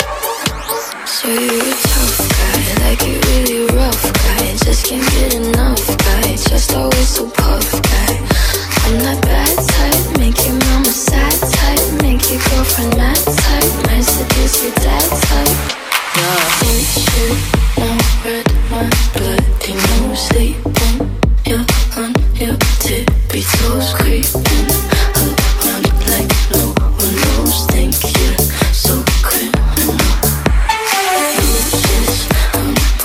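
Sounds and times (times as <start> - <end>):
music in G minor: 0.0 - 33.0.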